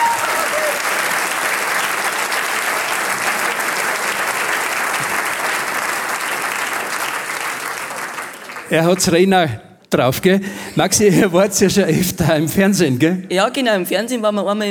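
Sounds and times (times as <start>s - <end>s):
audience applause: 0.0s - 9.3s
speech: 8.7s - 14.6s.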